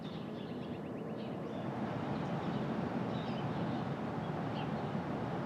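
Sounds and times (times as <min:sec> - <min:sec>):
short bird chirps in Brooklyn at dawn: 0:00.1 - 0:05.3
faint hum in Brooklyn: 0:01.3 - 0:05.4
low rumble of traffic in Brooklyn at dawn: 0:01.3 - 0:05.4.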